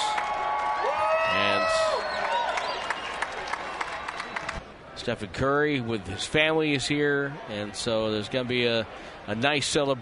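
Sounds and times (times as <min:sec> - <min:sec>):
whoops and shouts: 0:00.0 - 0:03.2
basketball fans cheering in arena: 0:00.0 - 0:04.6
speech: 0:05.0 - 0:10.0.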